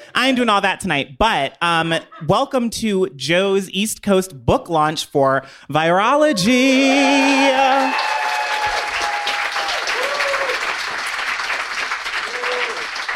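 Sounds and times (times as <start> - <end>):
speech: 0.2 - 8.1
faint cheers: 6.3 - 10.7, 12.2 - 12.9
audience applause: 6.9 - 13.1.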